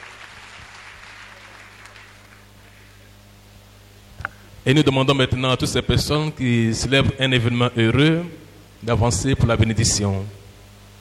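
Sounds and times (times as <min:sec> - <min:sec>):
audience applause: 0:00.0 - 0:02.5
low electrical hum: 0:00.0 - 0:11.0
speech: 0:04.6 - 0:10.4.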